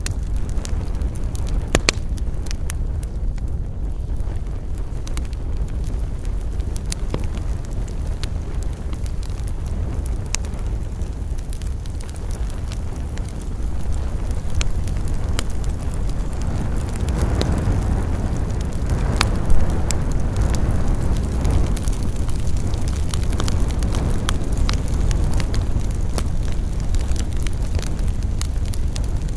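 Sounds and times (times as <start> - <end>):
campfire burning: 0.0 - 29.3.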